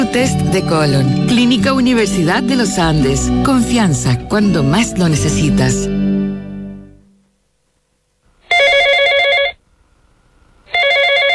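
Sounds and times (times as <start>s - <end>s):
speech: 0.1s - 6.1s
telephone ringing unanswered with electronic trilling: 8.5s - 9.6s, 10.7s - 11.3s.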